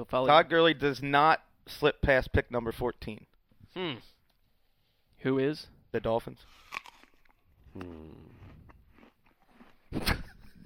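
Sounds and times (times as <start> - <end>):
speech: 0.0 - 4.1, 5.2 - 6.8, 7.8 - 8.3
sharp loud crunching bite of a sandwich: 6.5 - 10.4
person chewing a sandwich: 6.5 - 10.6.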